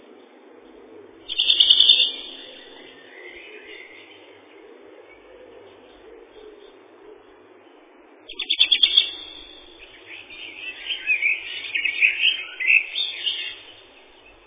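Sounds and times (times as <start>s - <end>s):
Greenish warbler song of high twittering notes, Phylloscopus trochiloides: 1.3s - 4.3s, 8.3s - 14.4s.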